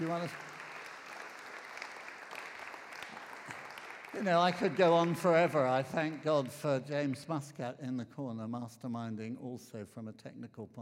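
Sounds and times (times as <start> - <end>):
speech: 0.0 - 0.5, 4.2 - 10.8
audience clapping: 0.0 - 7.4.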